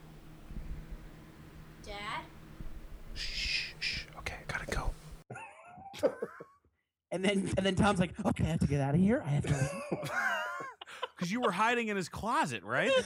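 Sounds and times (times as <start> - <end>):
fan noise: 0.0 - 5.2
speech: 7.2 - 10.3, 11.3 - 13.0.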